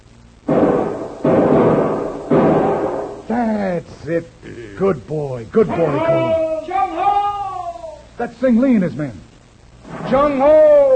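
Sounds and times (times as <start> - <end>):
rifle shots in a radio drama: 0.5 - 3.3
speech: 3.3 - 6.5, 8.2 - 9.3, 10.1 - 10.8.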